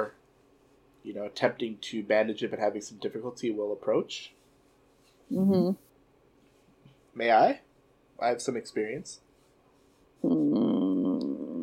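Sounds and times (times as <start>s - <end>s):
speech: 1.0s - 4.4s, 5.3s - 5.8s, 7.2s - 7.6s, 8.2s - 9.2s, 10.2s - 10.6s
person voicing low animal growl: 10.2s - 11.6s.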